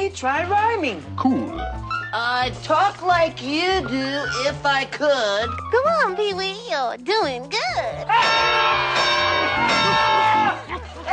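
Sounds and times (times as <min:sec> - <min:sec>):
speech: 0:00.1 - 0:10.2
crowd screaming: 0:08.1 - 0:10.7.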